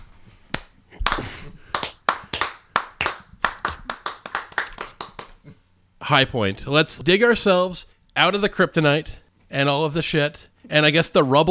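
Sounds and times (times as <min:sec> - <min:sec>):
slow clap: 0:00.5 - 0:05.6
speech: 0:06.1 - 0:11.4.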